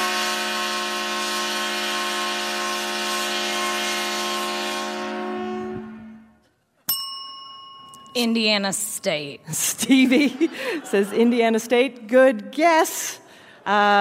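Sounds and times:
loud train-themed mascot whistle at touchdown: 0:00.0 - 0:06.4
sharp metallic ding: 0:06.9 - 0:08.6
speech: 0:08.2 - 0:13.9
laughter: 0:09.5 - 0:11.7.

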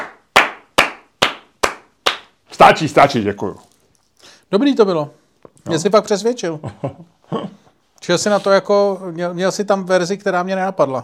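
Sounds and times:
crisp audience hand claps: 0:00.0 - 0:02.5
speech: 0:02.6 - 0:03.7, 0:04.5 - 0:11.0
laughter: 0:06.6 - 0:07.7.

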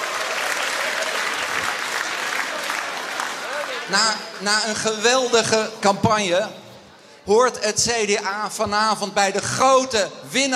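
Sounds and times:
party supporters cheering and applauding at an election-night celebration: 0:00.0 - 0:05.4
speech: 0:03.9 - 0:06.6, 0:07.2 - 0:10.5.

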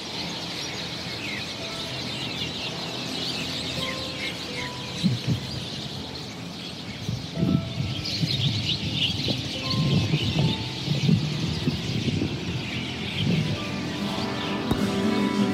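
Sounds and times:
flock of sparrows chirping: 0:00.0 - 0:15.5.

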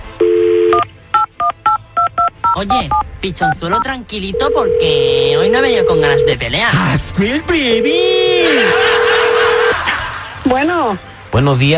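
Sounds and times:
telephone number being dialed with DTMF tones: 0:00.2 - 0:02.6, 0:04.4 - 0:06.3, 0:07.7 - 0:09.7
speech: 0:02.6 - 0:09.0, 0:10.5 - 0:11.7
laughter: 0:08.0 - 0:10.7.

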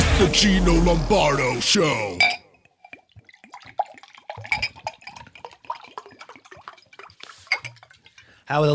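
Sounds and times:
speech: 0:00.2 - 0:02.4, 0:08.5 - 0:08.7
running dripping water: 0:02.2 - 0:08.5.

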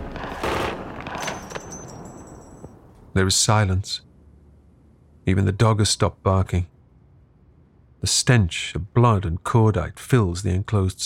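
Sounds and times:
burst of .45 caliber gunfire: 0:00.0 - 0:02.1
speech: 0:03.2 - 0:04.1, 0:05.3 - 0:06.7, 0:08.0 - 0:11.0.

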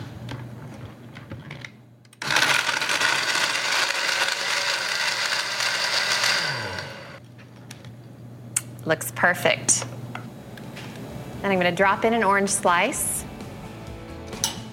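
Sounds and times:
blender whipping a drink: 0:02.2 - 0:07.2
speech: 0:08.9 - 0:10.0, 0:11.4 - 0:13.1.

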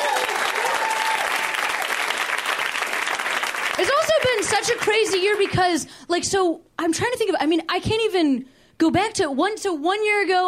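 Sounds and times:
audience applause: 0:00.0 - 0:05.6
speech: 0:03.8 - 0:10.4.

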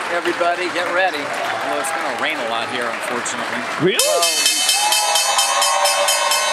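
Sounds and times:
speech: 0:00.1 - 0:04.5
stock exchange opening bell: 0:04.0 - 0:06.5.

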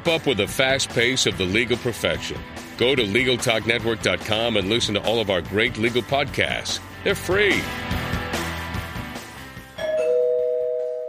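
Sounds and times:
speech: 0:00.0 - 0:08.0
music: 0:00.0 - 0:11.0
two-tone doorbell chime: 0:09.8 - 0:11.0.

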